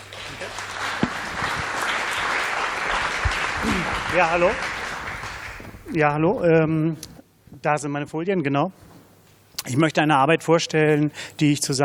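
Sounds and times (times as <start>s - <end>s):
audience applause: 0.0s - 5.9s
speech: 3.6s - 4.7s, 5.9s - 8.8s, 9.7s - 11.8s.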